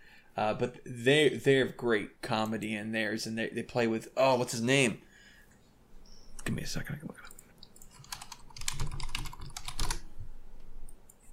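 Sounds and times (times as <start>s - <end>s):
speech: 0.4s - 5.1s, 6.4s - 7.2s
fingers typing rapidly on a computer keyboard: 7.3s - 10.0s.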